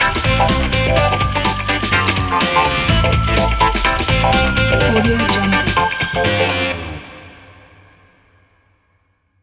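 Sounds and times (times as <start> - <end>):
funk music: 0.0 - 7.2.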